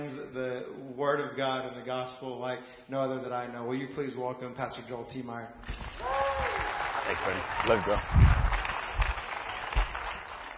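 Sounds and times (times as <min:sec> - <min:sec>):
speech: 0:00.3 - 0:06.5, 0:07.1 - 0:08.4
audience applauding: 0:05.7 - 0:10.5.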